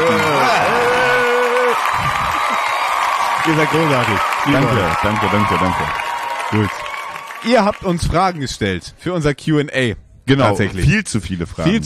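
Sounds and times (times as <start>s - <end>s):
long sustained whoop from the audience: 0.0s - 2.9s
crowd noise: 0.0s - 8.5s
audience applause: 0.0s - 8.6s
speech: 3.4s - 6.8s, 7.4s - 11.8s.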